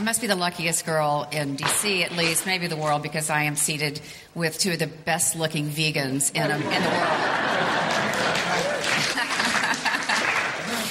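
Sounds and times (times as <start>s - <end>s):
speech: 0.0s - 9.3s
laughter: 6.4s - 10.8s
smattering of applause: 7.5s - 10.8s.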